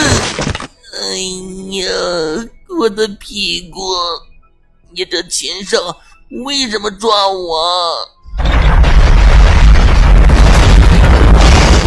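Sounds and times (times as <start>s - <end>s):
speech: 1.1s - 4.3s, 4.9s - 8.5s
crackling rattling debris: 8.3s - 11.8s
rumbling boom of cave shaking in earthquake: 8.3s - 11.8s.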